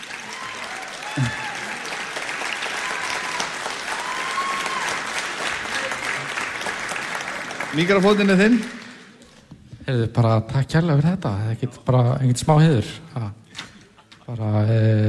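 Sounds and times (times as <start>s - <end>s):
audience applause for a big band and its conductor: 0.0s - 9.2s
speech: 1.2s - 1.4s, 7.8s - 8.8s, 9.9s - 13.1s, 14.4s - 15.0s.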